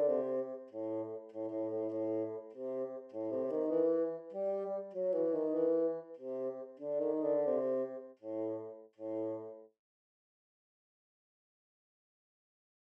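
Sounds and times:
bassoon: 0.0 - 9.7.

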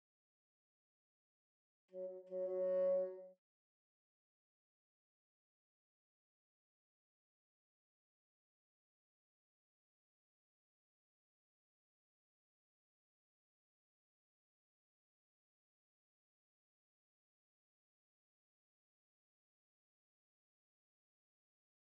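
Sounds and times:
bassoon: 2.0 - 3.4.

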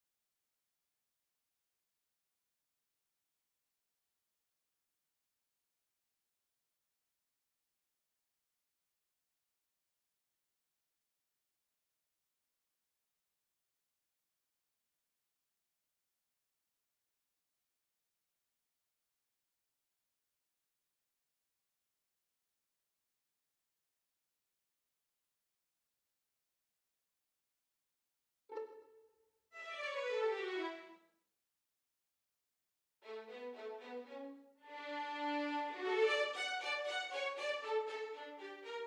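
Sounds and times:
violins playing: 28.5 - 28.9, 29.6 - 30.9, 33.1 - 38.8.

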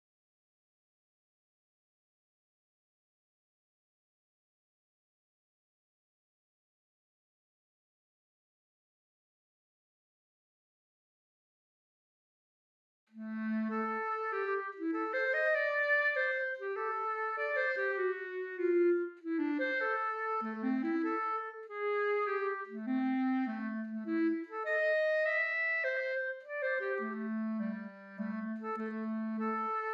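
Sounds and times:
clarinet: 13.1 - 29.9.

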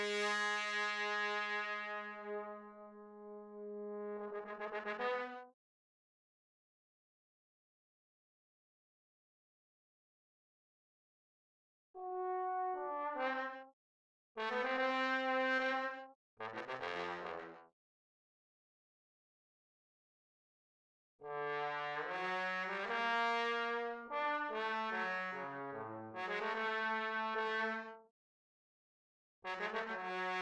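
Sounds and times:
trombone: 0.2 - 5.4, 12.0 - 13.6, 14.4 - 15.7, 16.4 - 17.6, 21.3 - 27.7, 29.5 - 30.4.

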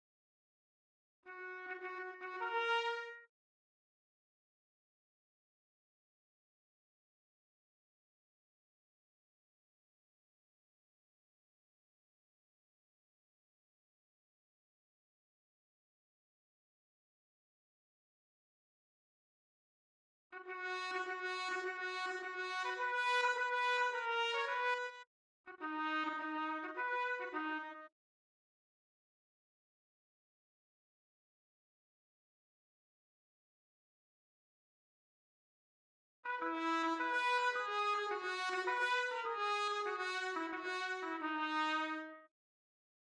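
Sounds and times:
trumpet: 1.3 - 3.3, 20.4 - 27.9, 36.2 - 42.3.

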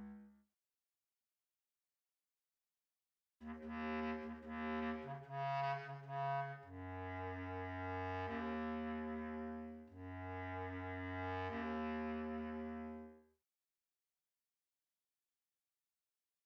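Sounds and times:
bass clarinet: 3.4 - 13.2.

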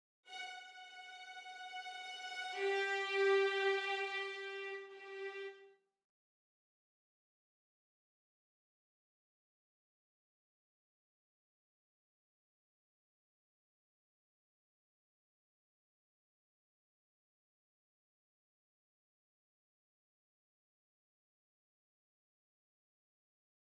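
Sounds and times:
violins: 0.3 - 5.7.

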